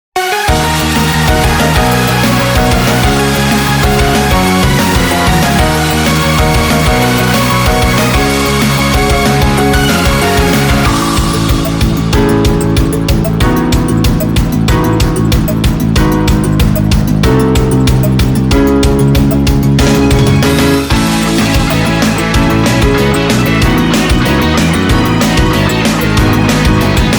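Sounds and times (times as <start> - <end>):
instrumental music: 0.2 - 27.1.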